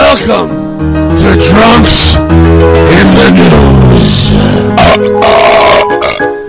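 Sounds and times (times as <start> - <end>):
speech: 0.2 - 6.3
loud burp: 4.0 - 6.4.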